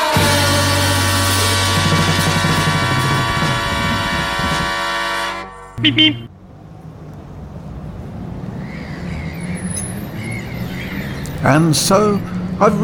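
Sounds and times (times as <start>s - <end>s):
ferry horn blast: 0.2s - 6.3s
ferry terminal low rumbling bustle: 0.3s - 12.8s
speech: 5.8s - 6.3s, 11.4s - 12.8s.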